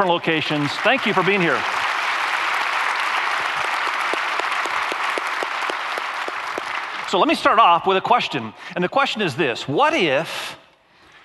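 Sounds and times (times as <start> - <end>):
speech: 0.0 - 1.8, 7.1 - 10.6
church audience applause: 0.0 - 7.2.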